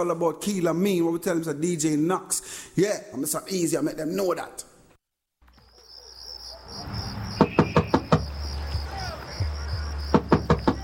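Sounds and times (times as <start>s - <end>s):
speech: 0.0s - 4.7s
crickets chirping: 5.5s - 10.8s
knocking on a door: 7.4s - 8.4s, 10.1s - 10.8s.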